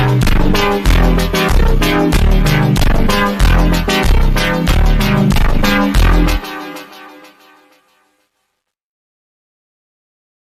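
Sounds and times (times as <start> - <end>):
super slowed reverb instrumental music: 0.0 - 7.8.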